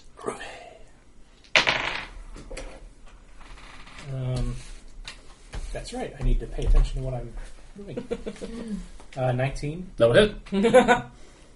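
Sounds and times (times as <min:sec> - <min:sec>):
dice rolled on a table for an attack in a tabletop role-playing game: 0:01.4 - 0:02.8
speech: 0:05.8 - 0:11.2.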